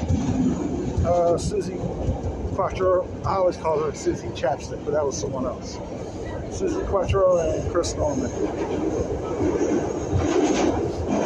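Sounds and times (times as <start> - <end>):
subway train cars passing underground: 0.0 - 11.2
speech: 1.3 - 5.9, 6.5 - 10.8.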